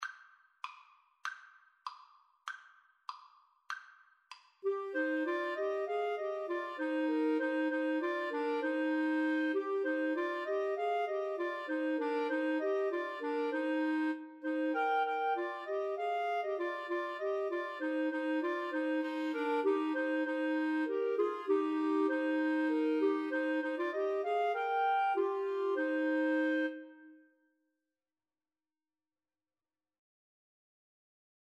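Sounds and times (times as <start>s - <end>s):
clarinet trio: 4.6s - 27.2s.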